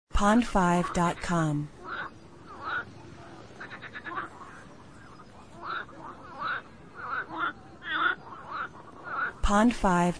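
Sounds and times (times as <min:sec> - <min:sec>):
low background hiss: 0:00.1 - 0:10.1
speech: 0:00.2 - 0:01.8, 0:09.5 - 0:10.1
frogs croaking in a chorus: 0:00.2 - 0:10.1.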